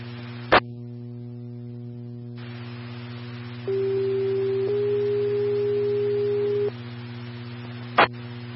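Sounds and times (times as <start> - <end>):
EMS 2 radio test tones: 3.6 - 6.7.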